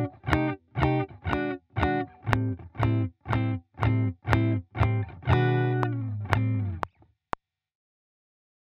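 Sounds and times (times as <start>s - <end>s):
blues backing music: 0.0s - 6.8s.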